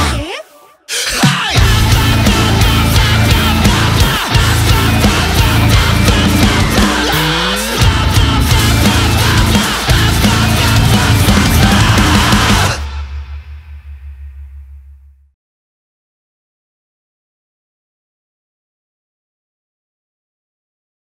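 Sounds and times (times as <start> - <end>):
metal cover song: 0.0 - 15.1.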